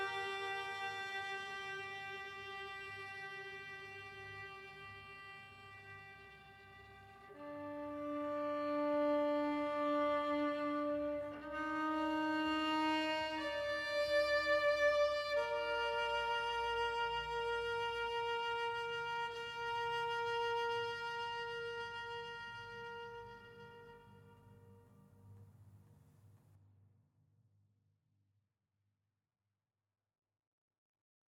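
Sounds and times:
exploration violin: 0.0s - 23.9s.

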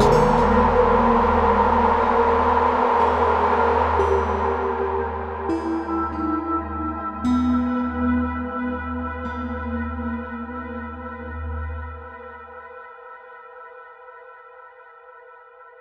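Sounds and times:
town music: 0.0s - 10.2s.

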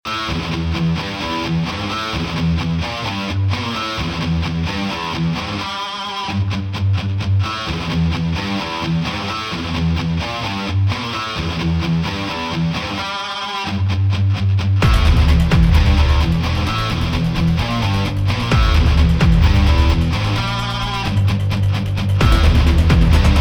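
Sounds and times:
heavy guitar riffs: 0.1s - 23.3s.

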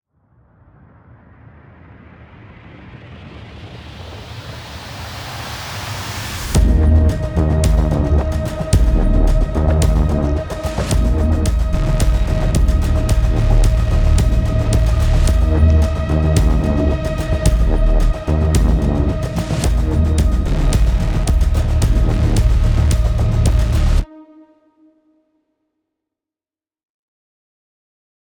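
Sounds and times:
hell swamp ambient music: 6.5s - 25.5s.

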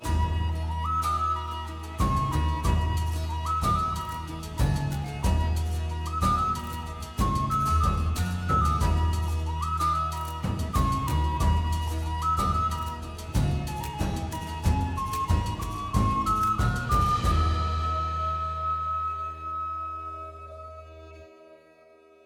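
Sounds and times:
low key positive music track: 0.0s - 21.6s.

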